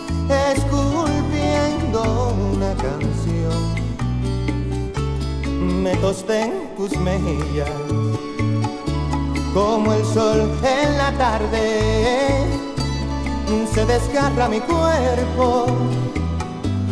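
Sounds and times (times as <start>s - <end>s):
Puerto Rican, Colombian and Latin American folkloric music: 0.0s - 16.9s.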